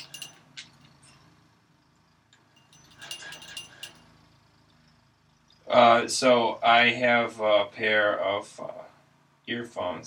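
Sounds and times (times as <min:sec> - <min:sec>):
small bell toy dragged by a pet bird: 0:00.0 - 0:01.5, 0:02.5 - 0:04.9
speech: 0:05.9 - 0:08.8, 0:09.5 - 0:10.0.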